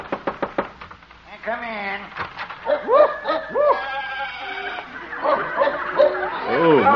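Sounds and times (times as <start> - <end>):
speech: 1.5 - 3.6, 6.5 - 6.9
laughter: 2.8 - 6.9
farm animals bleating in an animal shed: 3.7 - 5.5, 6.2 - 6.9.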